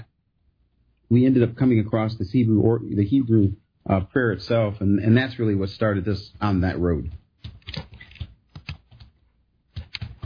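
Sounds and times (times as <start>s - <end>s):
speech: 1.1s - 7.2s
typing on a computer keyboard: 7.4s - 10.2s.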